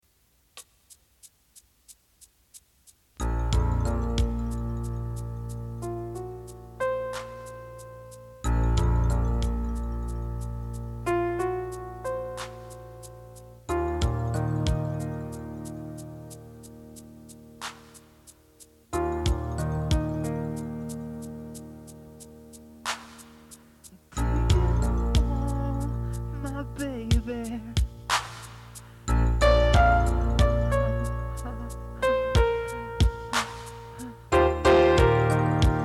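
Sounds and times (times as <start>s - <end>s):
piano: 3.2s - 35.8s.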